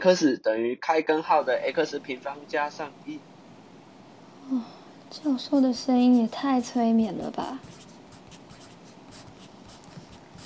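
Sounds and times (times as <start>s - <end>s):
speech: 0.0s - 3.3s, 4.5s - 7.8s
pen scratching on paper writing notes: 5.1s - 10.4s.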